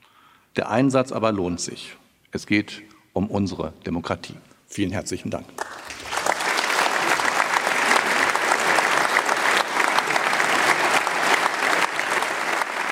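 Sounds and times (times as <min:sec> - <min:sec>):
speech: 0:00.6 - 0:05.9
long audience applause after lecture: 0:05.6 - 0:12.9.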